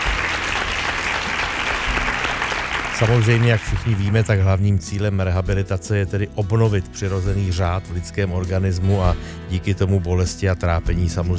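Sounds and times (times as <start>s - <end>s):
quiz show audience applause for a correct answer: 0.0s - 4.5s
speech: 3.0s - 11.3s.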